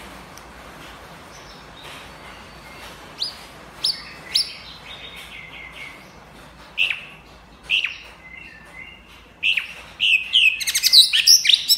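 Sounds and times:
white-rumped shama song: 2.6s - 6.0s, 7.7s - 11.7s.

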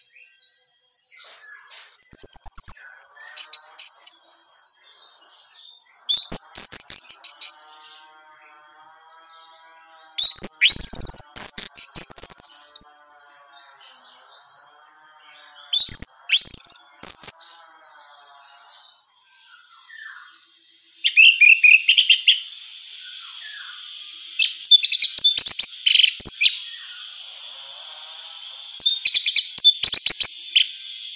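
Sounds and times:
orange-headed thrush whistled song: 0.0s - 7.8s, 10.2s - 12.9s, 19.1s - 27.2s, 28.8s - 31.1s.

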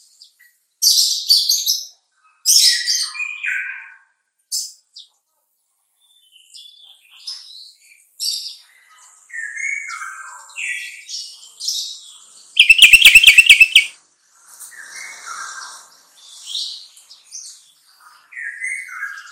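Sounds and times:
sooty-headed bulbul song: 12.6s - 13.9s.

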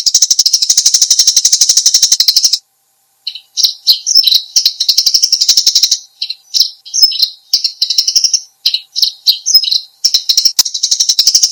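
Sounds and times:
Eurasian tree sparrow chattering: 0.0s - 2.6s, 3.2s - 11.5s.

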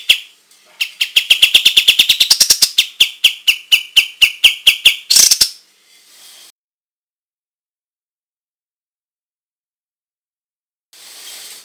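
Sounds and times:
white-shouldered triller calling: 0.0s - 5.6s.

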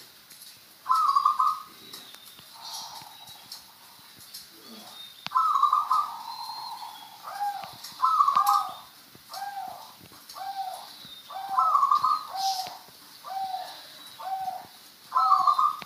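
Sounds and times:
zebra dove song: 0.9s - 15.8s.

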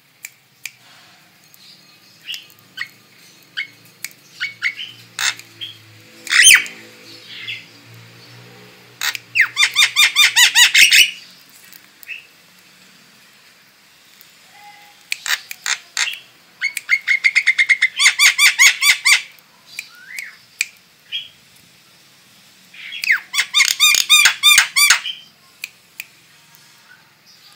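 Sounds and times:
female starling squeaky down-slurred calls: 2.2s - 7.8s, 9.0s - 11.4s, 14.4s - 19.3s, 22.8s - 25.3s.

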